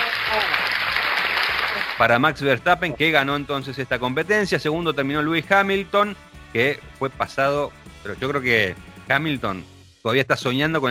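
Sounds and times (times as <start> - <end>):
applause and ovation: 0.0 - 2.3
speech: 0.3 - 0.6, 2.0 - 10.9.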